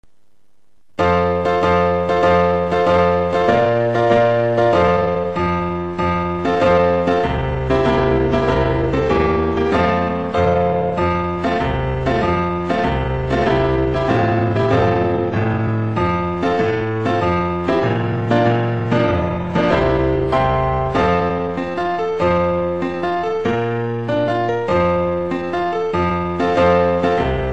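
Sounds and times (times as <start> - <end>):
background music: 1.0 - 27.5.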